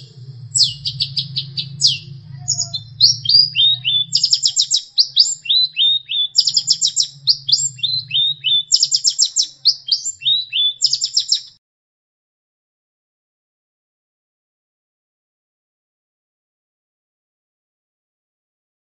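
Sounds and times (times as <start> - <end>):
Long-tailed shrike song: 0.0 - 11.6
low hum: 0.0 - 11.6.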